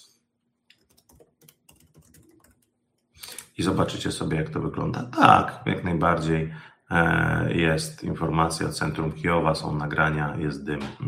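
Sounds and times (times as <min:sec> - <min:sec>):
typing a search query on a computer keyboard: 0:00.7 - 0:02.7
speech: 0:03.6 - 0:11.0.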